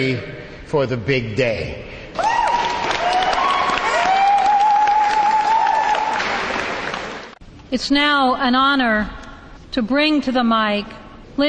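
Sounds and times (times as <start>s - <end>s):
speech: 0.0s - 2.3s, 7.7s - 9.2s, 9.8s - 11.4s
crowd audience applause and cheering: 2.2s - 7.4s.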